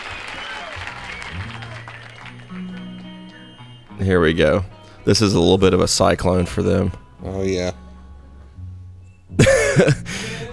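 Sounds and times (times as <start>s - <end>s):
laughter: 0.0s - 3.8s, 9.4s - 10.5s
audience clapping along to the beat on the one and three: 0.0s - 4.0s
music with sustained low tones: 0.9s - 10.5s
speech: 4.0s - 7.8s, 9.8s - 10.5s.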